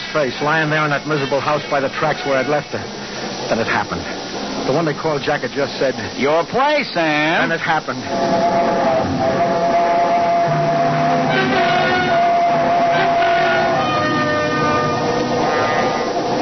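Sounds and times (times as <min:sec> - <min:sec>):
train roaring through a tunnel: 0:00.0 - 0:16.4
speech: 0:00.1 - 0:09.5.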